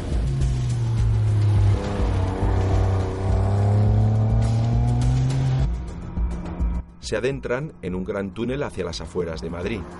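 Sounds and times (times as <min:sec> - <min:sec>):
sports cars driving past: 0:00.0 - 0:05.8, 0:09.5 - 0:09.9
speech: 0:07.1 - 0:09.9.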